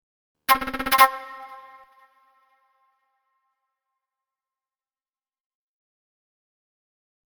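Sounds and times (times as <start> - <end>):
retro 1960s-70s TV-style flute trill: 0.5 - 2.2.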